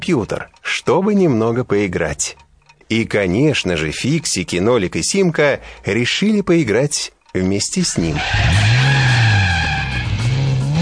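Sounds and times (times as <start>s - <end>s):
speech: 0.1s - 8.8s
car engine whining in a computer racing game: 7.9s - 10.7s
tires squealing in a skid in a computer racing game: 7.9s - 10.7s.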